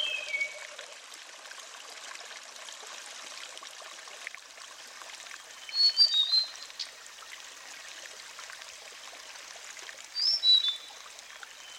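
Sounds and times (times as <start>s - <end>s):
Sulingan bird whistling song: 0.0s - 0.7s, 5.6s - 6.9s, 10.2s - 10.9s, 11.6s - 11.7s.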